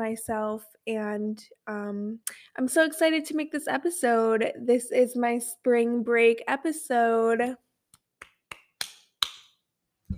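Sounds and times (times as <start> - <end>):
speech: 0.0 - 7.6
one person clapping hands: 8.2 - 9.6.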